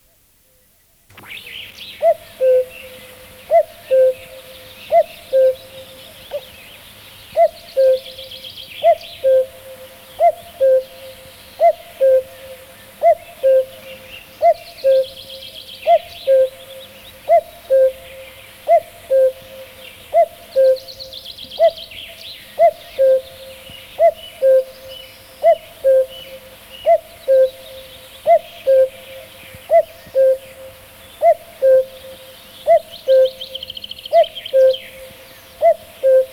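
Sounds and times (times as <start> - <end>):
faint birdsong: 0.0 - 36.3
common cuckoo calling: 1.1 - 6.6, 7.3 - 36.3.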